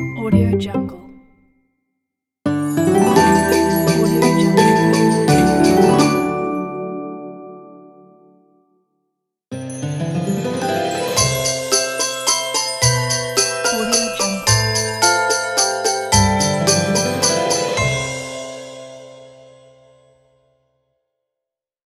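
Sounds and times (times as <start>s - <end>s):
Christmas logo jingle: 0.1s - 1.4s, 2.6s - 7.9s, 9.6s - 19.9s.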